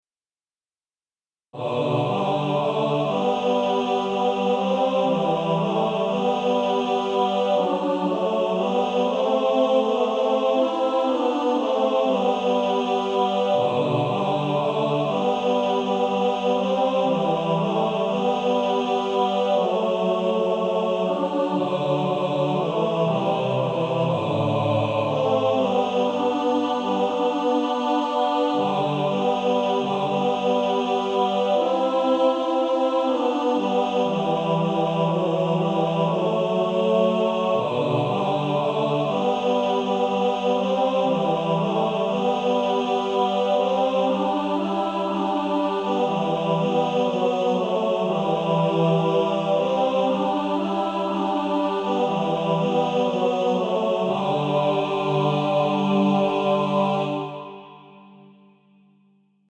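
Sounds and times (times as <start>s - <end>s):
male choir: 1.6s - 58.2s.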